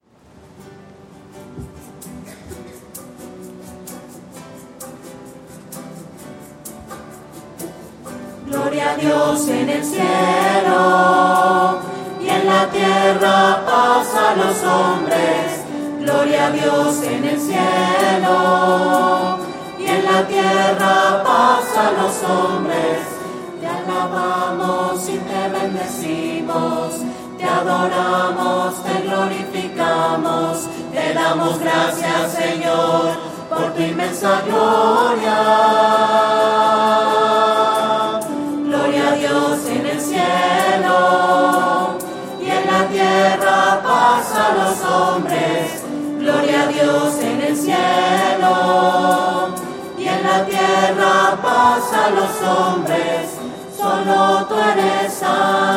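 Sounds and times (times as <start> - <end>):
voices singing: 8.0 - 55.7.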